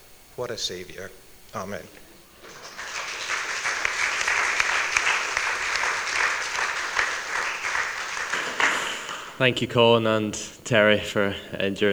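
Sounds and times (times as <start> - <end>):
speech: 0.4 - 2.1, 9.4 - 11.9
laughter: 1.5 - 11.9
applause: 2.2 - 9.8.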